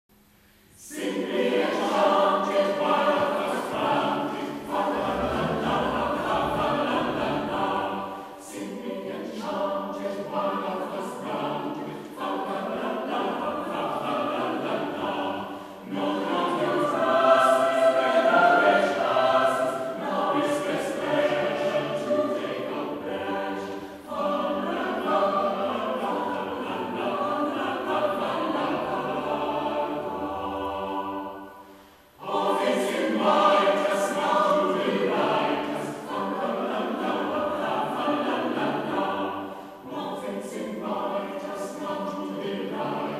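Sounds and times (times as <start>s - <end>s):
people singing a chant: 0.8s - 43.1s.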